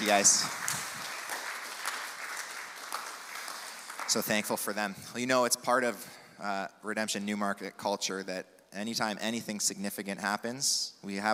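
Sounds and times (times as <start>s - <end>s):
crowd applause: 0.0s - 4.6s
speech: 0.1s - 0.8s, 4.1s - 11.3s.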